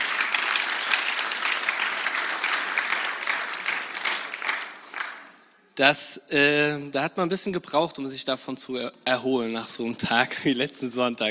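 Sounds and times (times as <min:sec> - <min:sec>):
audience applause: 0:00.0 - 0:05.4
speech: 0:05.8 - 0:11.2.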